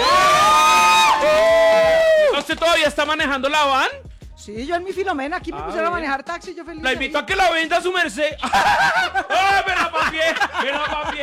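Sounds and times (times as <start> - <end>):
crowd cheering and applause: 0.0 - 2.8
speech: 2.7 - 11.2
laughter: 8.4 - 11.2.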